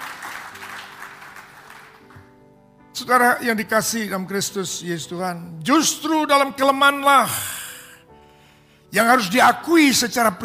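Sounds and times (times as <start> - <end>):
audience applauding: 0.0 - 2.4
speech: 3.0 - 7.6, 8.9 - 10.4.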